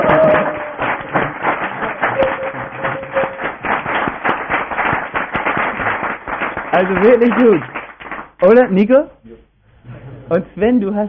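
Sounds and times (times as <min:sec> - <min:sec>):
group applauding: 0:00.0 - 0:08.7
speech: 0:06.8 - 0:07.7, 0:08.4 - 0:09.1, 0:10.3 - 0:11.0.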